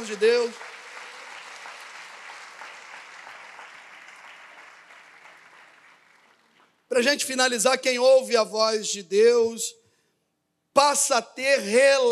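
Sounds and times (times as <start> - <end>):
audience applauding: 0.0 - 6.8
speech: 0.1 - 0.7, 6.9 - 9.8, 10.8 - 12.1.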